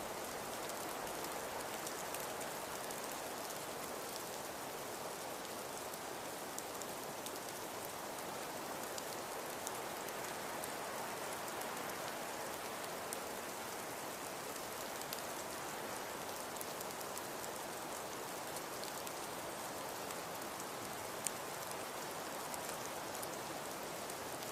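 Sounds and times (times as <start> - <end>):
snowfall: 0.0 - 24.5.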